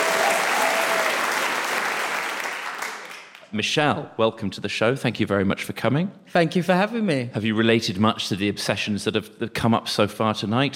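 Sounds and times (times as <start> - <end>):
audience applause: 0.0 - 3.4
speech: 3.5 - 10.7.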